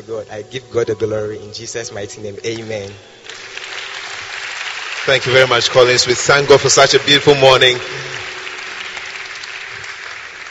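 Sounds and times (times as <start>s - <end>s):
speech: 0.0s - 3.6s, 5.0s - 8.2s
people clapping for the Lord: 2.5s - 10.4s.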